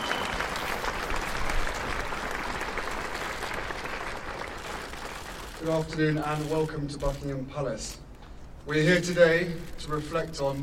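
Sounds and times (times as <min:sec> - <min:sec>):
crowd applauding and cheering: 0:00.0 - 0:05.8
speech: 0:05.6 - 0:08.0, 0:08.7 - 0:10.6.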